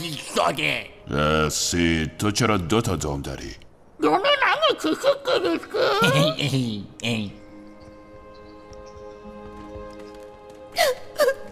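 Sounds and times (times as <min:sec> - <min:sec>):
speech: 0:00.0 - 0:07.4, 0:10.8 - 0:11.0
person sobbing: 0:04.8 - 0:06.9, 0:10.7 - 0:11.5.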